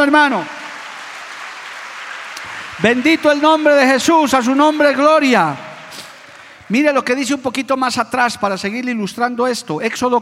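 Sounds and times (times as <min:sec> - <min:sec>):
speech: 0:00.0 - 0:00.6, 0:02.8 - 0:05.7, 0:06.7 - 0:10.1
audience applauding: 0:00.0 - 0:07.4.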